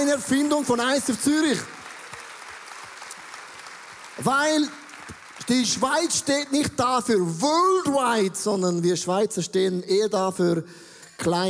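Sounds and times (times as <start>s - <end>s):
audience applause: 0.0s - 7.0s
speech: 0.1s - 1.8s, 4.2s - 4.8s, 5.5s - 11.4s.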